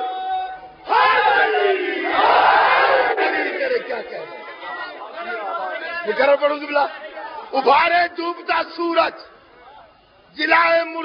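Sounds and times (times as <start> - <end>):
large crowd at a religious majlis shouting a slogan together: 0.0 - 7.7
speech: 6.1 - 9.4, 10.3 - 11.0.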